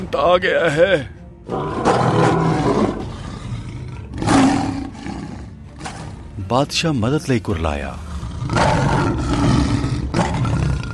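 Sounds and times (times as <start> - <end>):
speech: 0.0 - 2.6, 6.5 - 9.2
lion roaring: 1.5 - 6.2, 8.1 - 10.9.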